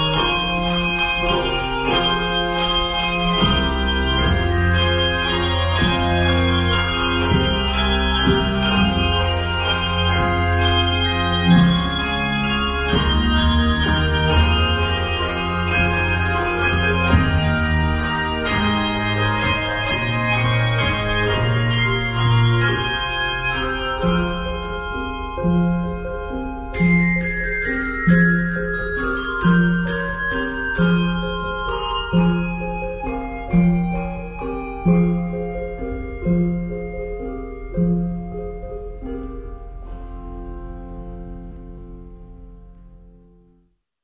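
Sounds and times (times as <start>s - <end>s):
concert bell choir playing a carol: 0.0s - 39.5s.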